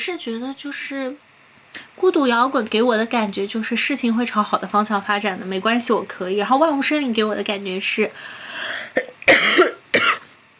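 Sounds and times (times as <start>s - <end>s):
speech: 0.0s - 9.6s
person coughing: 8.7s - 10.3s.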